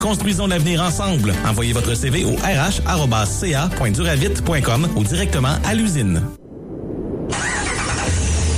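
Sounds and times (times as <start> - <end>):
speech: 0.0 - 6.4
Ram 1500 pickup truck engine starting: 7.3 - 8.5.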